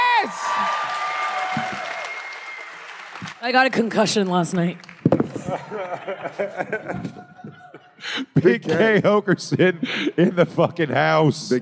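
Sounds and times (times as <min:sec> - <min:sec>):
audience clapping: 0:00.0 - 0:06.4
speech: 0:03.4 - 0:04.9, 0:05.5 - 0:07.3, 0:08.0 - 0:11.6
laughter: 0:05.2 - 0:11.0.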